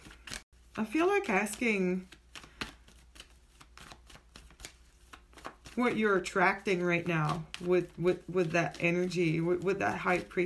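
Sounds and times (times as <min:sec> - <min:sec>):
tarot deck rustling and flicking as a card is drawn: 0:00.0 - 0:10.4
speech: 0:00.8 - 0:02.2, 0:05.8 - 0:10.4.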